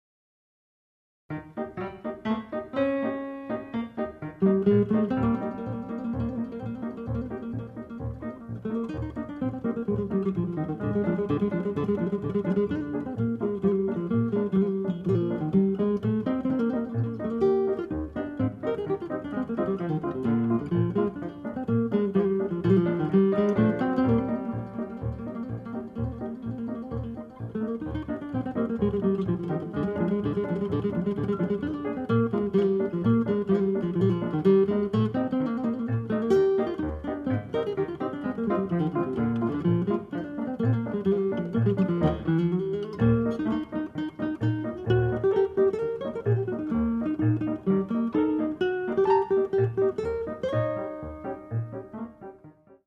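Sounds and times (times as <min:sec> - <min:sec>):
staccato instrumental piece: 0:01.3 - 0:52.6.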